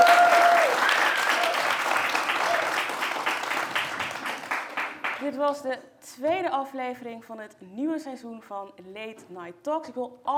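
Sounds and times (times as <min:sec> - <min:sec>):
audience applause: 0:00.0 - 0:05.2
speech: 0:05.3 - 0:10.3.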